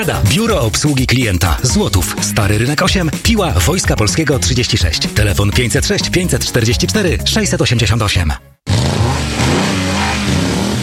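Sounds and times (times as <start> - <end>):
speech: 0.0 - 8.5
car engine revving hard: 8.7 - 10.8.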